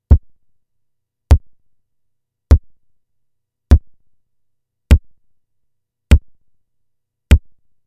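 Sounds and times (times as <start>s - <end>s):
kick drums: 0.1s - 0.3s, 1.3s - 1.5s, 2.5s - 2.7s, 3.7s - 3.9s, 4.9s - 5.1s, 6.1s - 6.3s, 7.3s - 7.6s.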